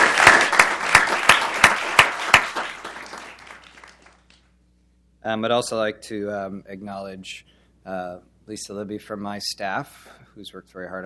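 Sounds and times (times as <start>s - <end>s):
applause: 0.0s - 4.5s
speech: 5.3s - 11.0s.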